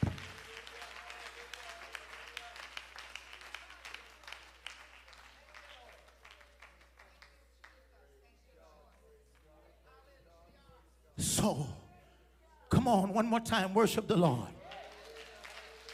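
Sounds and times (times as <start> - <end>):
audience clapping hands in worship: 0.0 - 7.9, 13.7 - 15.9
speech: 11.3 - 11.8, 12.8 - 14.6.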